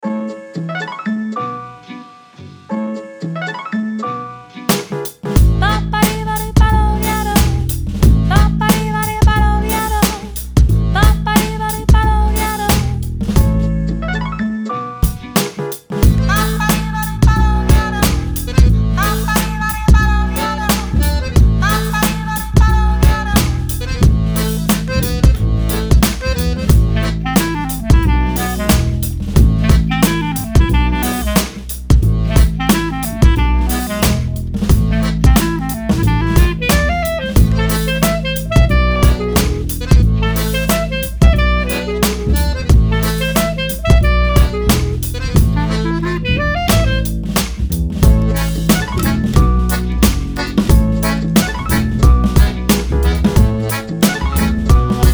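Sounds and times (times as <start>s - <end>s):
retro ballroom music: 4.7s - 55.1s.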